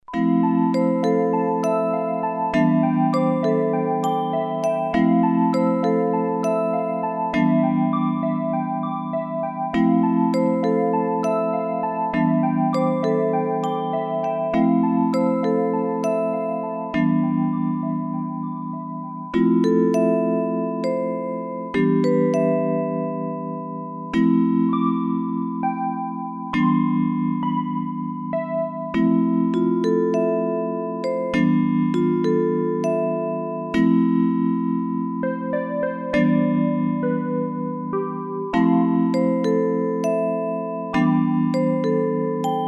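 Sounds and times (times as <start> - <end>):
music box: 0.0 - 42.6.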